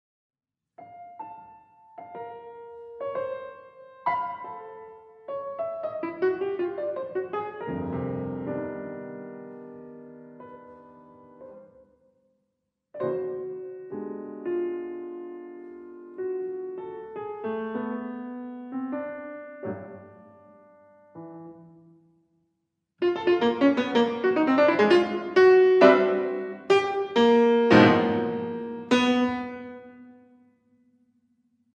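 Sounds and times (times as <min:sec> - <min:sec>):
piano music: 0:00.8 - 0:11.8, 0:13.0 - 0:21.9, 0:23.0 - 0:30.4.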